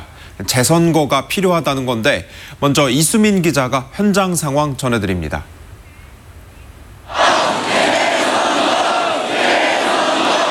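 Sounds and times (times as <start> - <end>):
speech: 0.4 - 5.6
protest crowd shouting angrily in front of a vote counting centre: 7.1 - 10.4.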